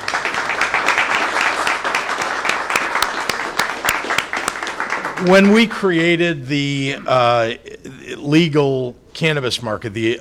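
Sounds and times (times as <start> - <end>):
crowd applause: 0.0 - 5.6
speech: 5.2 - 10.1.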